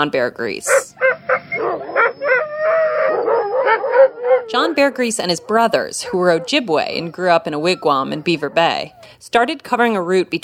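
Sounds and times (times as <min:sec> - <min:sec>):
speech: 0:00.0 - 0:01.1, 0:03.7 - 0:10.4
sled dogs howling: 0:00.6 - 0:09.0.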